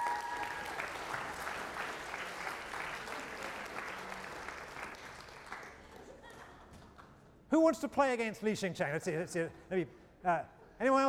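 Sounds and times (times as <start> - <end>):
audience applause: 0.0 - 6.2
speech: 7.6 - 11.0.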